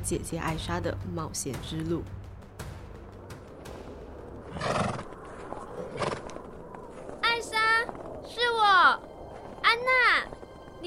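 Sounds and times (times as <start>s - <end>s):
speech: 0.1s - 2.2s
horse hooves clip-clopping: 0.4s - 10.8s
ridden horse whinnying: 4.5s - 5.1s.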